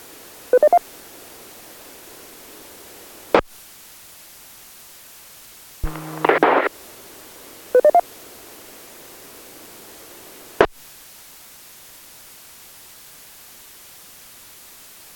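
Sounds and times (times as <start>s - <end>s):
DTMF touch-tones resetting an amateur radio repeater: 0.6s - 0.8s, 7.8s - 8.0s
radio static and hiss: 5.8s - 6.8s.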